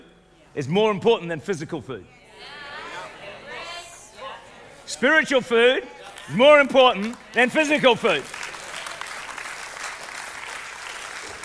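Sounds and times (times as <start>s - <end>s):
speech: 0.6s - 2.6s, 4.9s - 8.4s
audience clapping: 6.0s - 11.4s.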